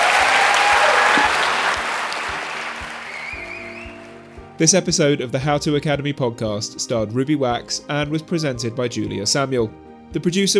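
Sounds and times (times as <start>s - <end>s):
crowd applause: 0.0s - 4.3s
speech: 4.6s - 10.5s.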